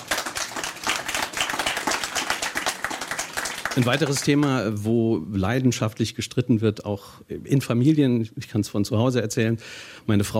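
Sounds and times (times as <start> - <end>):
audience applauding: 0.0 - 4.6
speech: 3.8 - 10.3.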